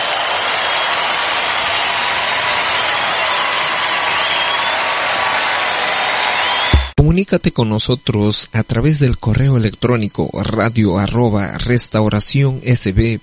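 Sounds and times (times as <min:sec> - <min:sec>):
audience applause: 0:00.0 - 0:07.0
speech: 0:07.1 - 0:13.2.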